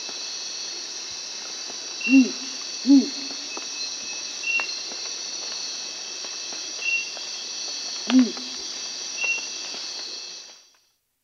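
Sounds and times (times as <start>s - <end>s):
feline night monkey calling in a South American rainforest: 2.0s - 3.6s, 8.1s - 8.6s.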